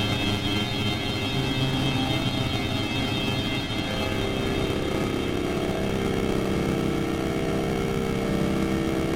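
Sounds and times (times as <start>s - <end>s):
drone motors buzzing and whining: 0.2s - 9.1s.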